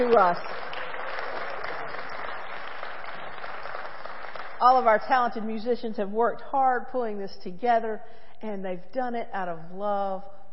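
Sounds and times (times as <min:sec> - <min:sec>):
speech: 0:00.0 - 0:00.7, 0:04.6 - 0:10.4
crowd clapping: 0:00.0 - 0:04.6.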